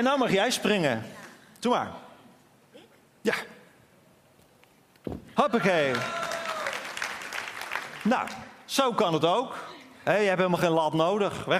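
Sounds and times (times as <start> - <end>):
speech: 0.0 - 2.0, 3.2 - 3.5, 5.0 - 6.2, 8.0 - 11.5
audience applause: 5.5 - 8.5.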